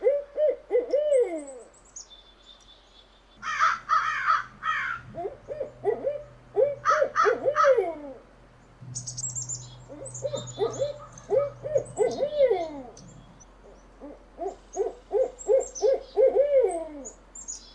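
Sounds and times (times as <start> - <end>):
owl hooting: 0.0 - 1.7, 3.4 - 17.7.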